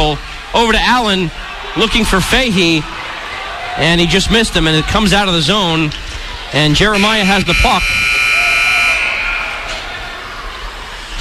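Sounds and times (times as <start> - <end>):
speech: 0.1 - 3.0, 3.8 - 8.2
whistle ending the second period of a hockey game: 6.8 - 9.7.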